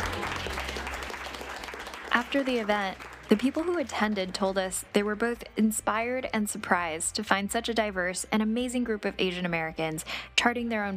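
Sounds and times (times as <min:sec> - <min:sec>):
crowd applause: 0:00.0 - 0:04.4
speech: 0:02.2 - 0:10.9.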